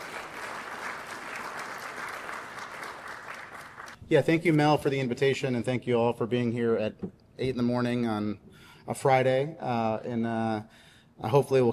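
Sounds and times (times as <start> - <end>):
audience applause: 0.0 - 4.0
speech: 4.1 - 11.7.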